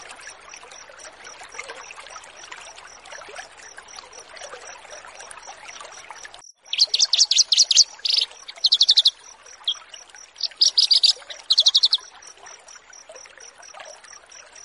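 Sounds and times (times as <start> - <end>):
Horsfield's bush lark singing: 6.5 - 12.1.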